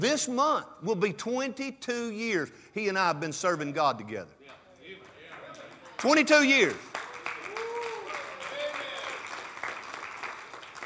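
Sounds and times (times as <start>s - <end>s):
speech: 0.0s - 4.4s, 6.0s - 6.9s
audience applause: 5.0s - 10.8s.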